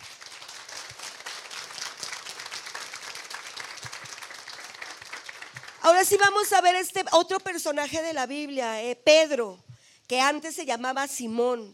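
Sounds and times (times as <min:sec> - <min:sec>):
audience applauding: 0:00.0 - 0:06.6
speech: 0:05.9 - 0:11.7.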